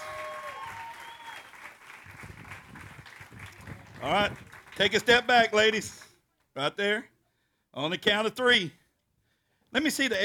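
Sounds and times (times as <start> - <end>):
audience round of applause: 0.0 - 5.4
speech: 4.0 - 6.0, 6.6 - 7.1, 7.8 - 8.8, 9.7 - 10.2.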